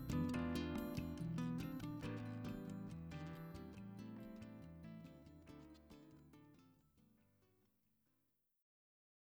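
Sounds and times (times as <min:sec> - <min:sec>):
bossa nova music: 0:00.0 - 0:06.5.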